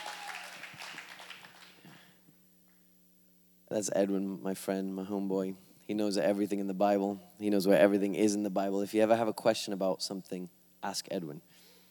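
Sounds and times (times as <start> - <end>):
audience applause: 0.0 - 2.1
speech: 3.7 - 11.6.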